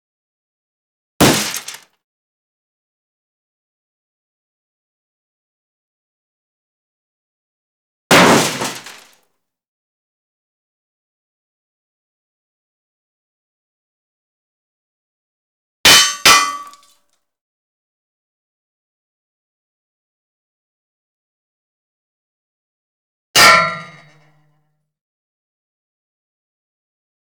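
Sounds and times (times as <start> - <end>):
bullet impacts on metal: 1.2 - 1.8, 15.9 - 16.8, 23.4 - 24.2.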